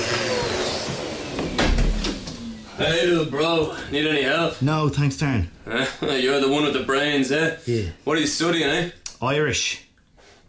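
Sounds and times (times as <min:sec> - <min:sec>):
vacuum cleaner hoovering: 0:00.0 - 0:04.4
speech: 0:02.8 - 0:09.8.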